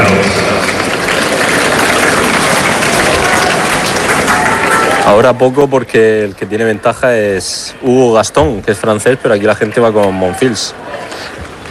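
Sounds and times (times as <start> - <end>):
roar of tennis crowd noise: 0.0 - 6.8, 9.8 - 11.6
tennis crowd applauding at Court Philippe Chatrier, Roland Garros: 0.0 - 7.3, 9.0 - 11.6
speech: 5.1 - 11.4.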